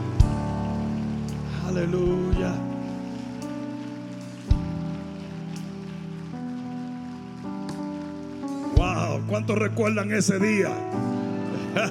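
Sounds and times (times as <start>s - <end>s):
church audience clapping: 0.0s - 9.2s
speech: 1.8s - 2.7s, 9.3s - 11.1s, 11.7s - 11.9s.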